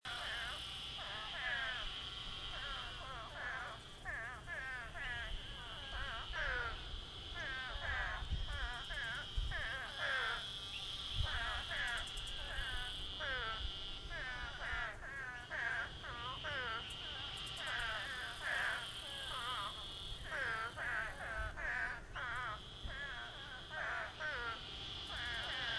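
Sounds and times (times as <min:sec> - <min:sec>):
emergent pond ambience: 0:00.0 - 0:25.7.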